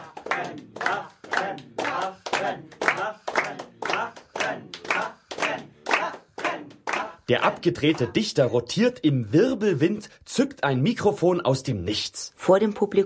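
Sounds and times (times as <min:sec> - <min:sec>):
audience applause: 0:00.0 - 0:07.2
speech: 0:07.3 - 0:13.0.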